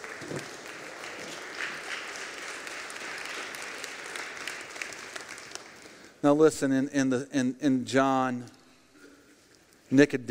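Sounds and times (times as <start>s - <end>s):
crowd clapping: 0.0s - 6.2s
speech: 6.2s - 8.6s, 9.9s - 10.2s.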